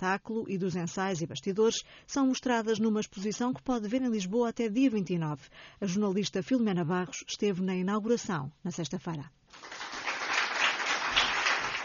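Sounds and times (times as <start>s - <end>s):
speech: 0.0s - 9.9s
audience applause: 9.5s - 11.8s.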